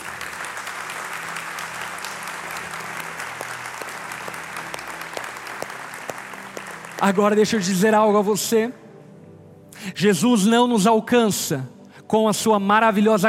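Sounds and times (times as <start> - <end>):
audience applause: 0.0 - 7.4
speech: 7.0 - 8.8, 10.0 - 13.2.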